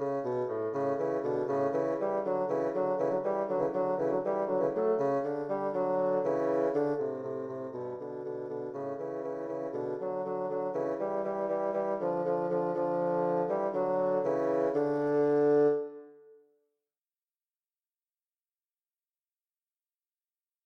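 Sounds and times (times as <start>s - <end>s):
allegro bassoon duet: 0.0s - 16.2s.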